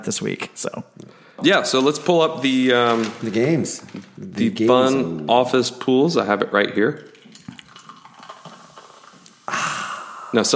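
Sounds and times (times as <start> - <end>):
speech: 0.0 - 7.1, 10.3 - 10.5
faint clinks and small liquid ticks: 6.9 - 9.3
Diet Coke fizzing as poured into a glass of bourbon: 7.0 - 10.5.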